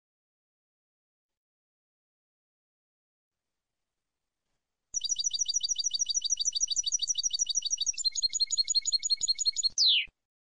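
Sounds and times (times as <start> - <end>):
European goldfinch singing: 5.0 - 10.1.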